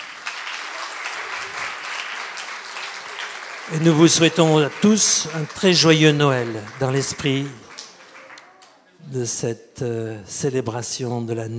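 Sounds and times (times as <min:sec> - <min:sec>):
audience applauding: 0:00.0 - 0:08.8
speech: 0:03.7 - 0:07.6, 0:09.1 - 0:11.5.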